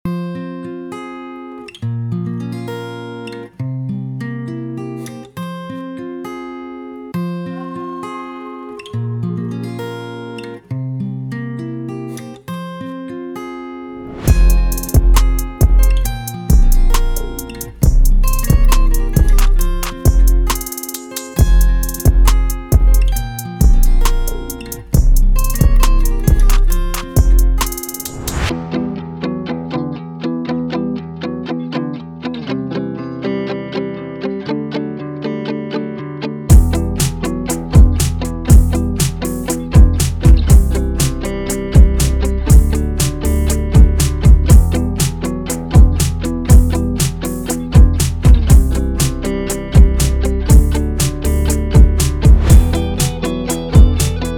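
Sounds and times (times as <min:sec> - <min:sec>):
beats: 0:14.3 - 0:29.1, 0:36.5 - 0:54.3.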